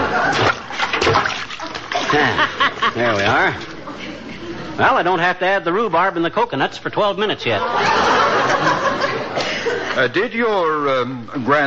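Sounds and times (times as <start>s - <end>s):
laughter: 0.0s - 0.9s, 1.6s - 4.8s, 7.5s - 10.1s
potato chunks splashing into a pot of water: 0.3s - 2.3s
speech: 2.1s - 3.7s, 4.8s - 8.8s, 10.0s - 11.6s.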